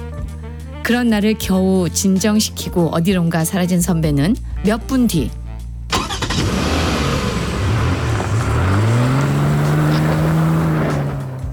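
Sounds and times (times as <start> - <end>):
speech: 0.8 - 5.4
white car engine running as it pulls up: 5.9 - 11.5.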